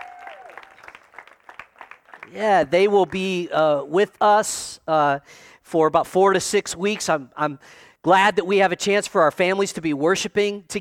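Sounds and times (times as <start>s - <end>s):
audience hand clapping welcome: 0.0s - 3.3s
speech: 2.3s - 10.7s.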